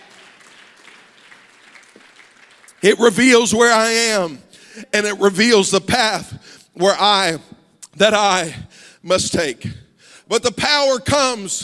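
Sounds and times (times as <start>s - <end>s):
audience clapping hands: 0.0s - 3.0s
speech: 2.8s - 11.6s.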